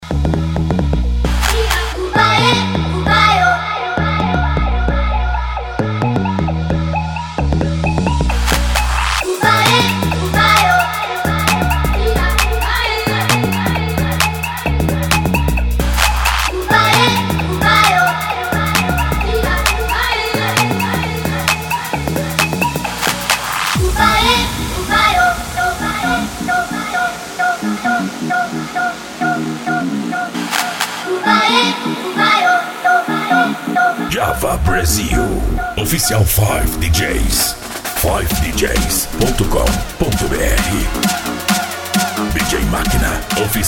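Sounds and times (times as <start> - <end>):
electro music mix: 0.0 - 43.6.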